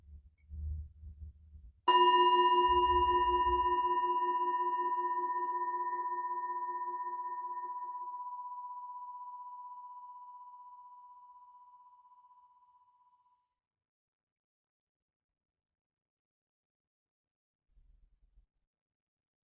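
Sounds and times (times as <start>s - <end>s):
meditation bell ringing: 1.9s - 12.2s.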